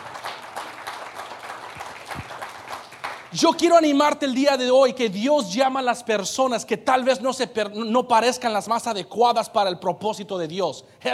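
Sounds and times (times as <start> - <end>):
audience applauding: 0.0 - 3.6
speech: 3.3 - 11.1.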